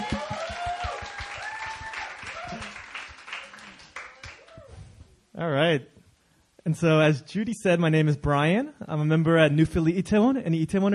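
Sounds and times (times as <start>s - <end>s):
crowd applauding: 0.0s - 4.6s
whooping and cheering: 0.0s - 4.9s
speech: 5.4s - 6.0s, 6.7s - 10.9s.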